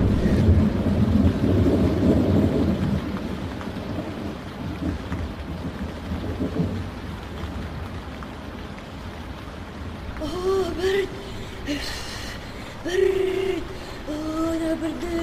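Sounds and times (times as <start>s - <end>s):
rumbling thunder in a winter storm: 0.0s - 6.9s
rain pouring steadily in a winter storm: 0.0s - 15.2s.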